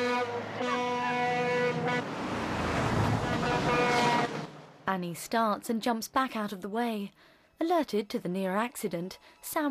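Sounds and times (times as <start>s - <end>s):
cars speeding past on road: 0.1s - 4.9s
lorry speeding past on road: 1.4s - 4.9s
speech: 4.9s - 9.6s.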